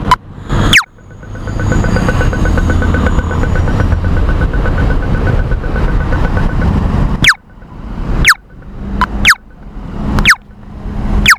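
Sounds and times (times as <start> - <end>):
traffic light signal in Singapore: 0.1 - 11.3.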